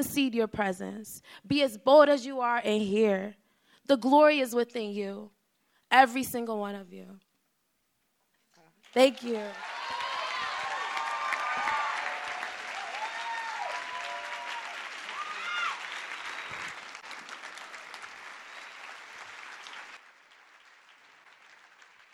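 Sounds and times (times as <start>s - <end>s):
speech: 0.0s - 7.3s, 8.9s - 9.8s
audience applause: 8.9s - 22.1s
audience cheering: 9.0s - 20.0s.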